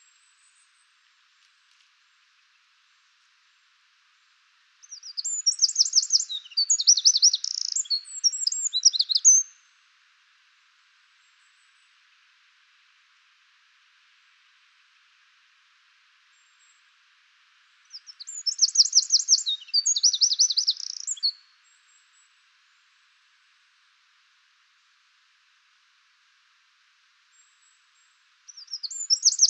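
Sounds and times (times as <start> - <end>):
Eurasian wren singing: 4.8 - 9.4, 17.9 - 21.4, 28.5 - 29.4.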